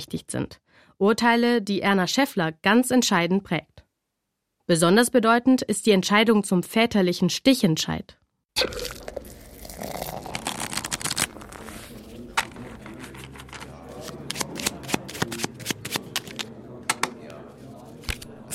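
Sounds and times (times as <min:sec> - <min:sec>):
speech: 0:00.0 - 0:03.7, 0:04.7 - 0:09.0
playing cards being shuffled: 0:08.9 - 0:16.5, 0:18.0 - 0:18.5.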